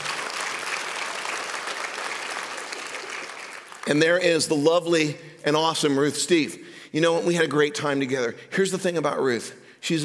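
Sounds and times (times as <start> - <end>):
audience applause: 0.0 - 4.0
speech: 3.9 - 10.0.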